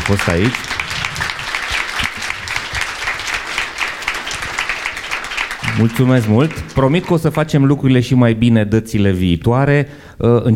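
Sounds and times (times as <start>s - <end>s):
audience applause: 0.0s - 7.7s
speech: 0.1s - 0.8s, 5.8s - 10.5s.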